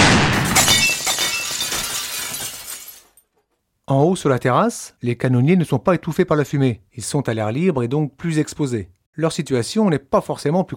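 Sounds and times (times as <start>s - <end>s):
castle window glass shattering: 0.0s - 3.3s
glass fragments tinkling: 0.6s - 3.3s
speech: 3.9s - 10.7s.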